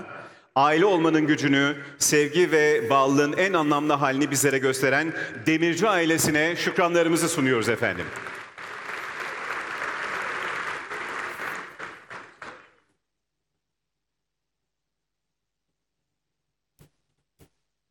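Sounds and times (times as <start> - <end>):
speech: 0.6 - 8.3
audience applause at an award ceremony: 7.8 - 12.8.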